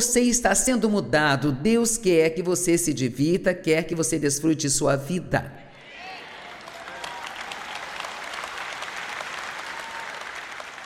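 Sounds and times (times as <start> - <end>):
speech: 0.0 - 5.6
audience clapping: 5.9 - 10.8.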